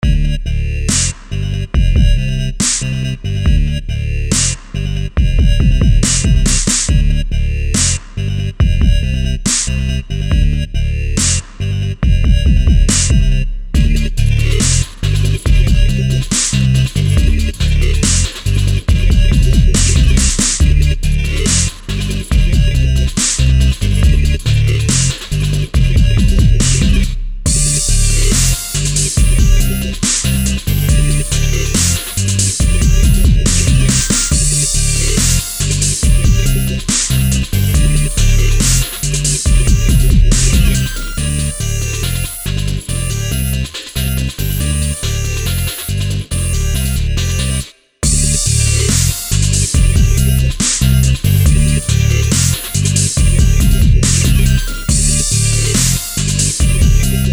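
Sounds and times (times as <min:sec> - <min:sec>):
funky dubstep music: 0:00.0 - 0:57.3.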